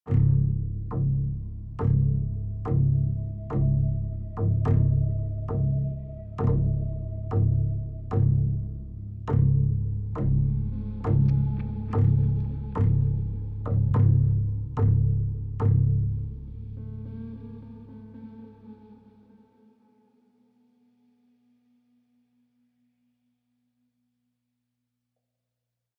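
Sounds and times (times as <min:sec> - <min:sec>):
tense mood music: 0:00.1 - 0:19.7.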